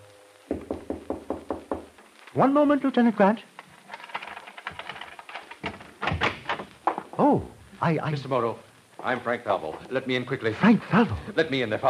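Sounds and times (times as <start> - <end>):
knock on a door: 0.5 - 1.9
speech: 2.4 - 3.5, 7.3 - 11.8.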